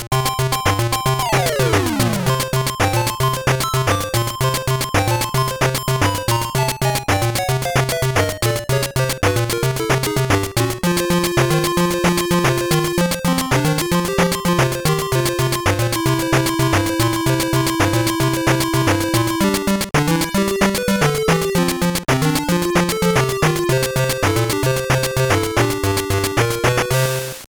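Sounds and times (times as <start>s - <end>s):
background music: 0.2s - 27.5s.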